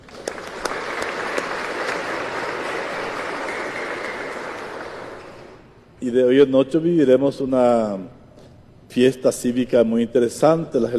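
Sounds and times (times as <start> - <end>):
crowd applause: 0.0 - 5.6
speech: 6.0 - 8.2, 8.9 - 10.9.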